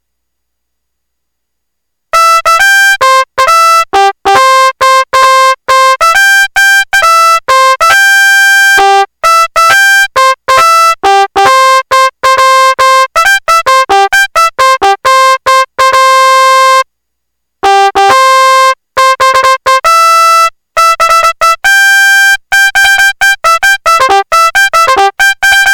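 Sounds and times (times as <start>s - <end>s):
MIDI bugle call in C: 2.2s - 16.8s, 17.6s - 25.7s.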